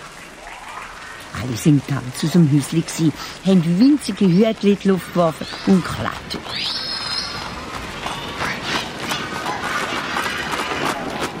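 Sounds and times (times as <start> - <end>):
busy rumbling background: 0.0 - 11.3
speech: 1.4 - 6.8
horse-drawn carriage hooves clip-clopping: 4.5 - 11.3.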